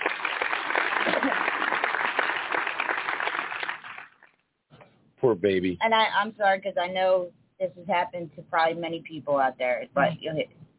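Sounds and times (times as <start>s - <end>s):
applause: 0.0s - 4.4s
speech: 5.2s - 10.6s.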